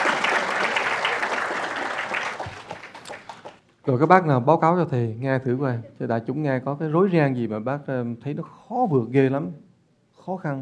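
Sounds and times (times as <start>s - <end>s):
audience applause: 0.0s - 3.6s
speech: 3.9s - 9.7s, 10.3s - 10.6s.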